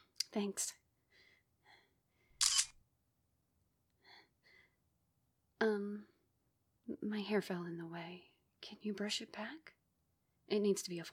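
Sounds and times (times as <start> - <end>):
speech: 0.4 - 0.8, 5.6 - 6.1, 6.9 - 9.8, 10.5 - 11.1
phone camera shutter click: 2.4 - 2.7.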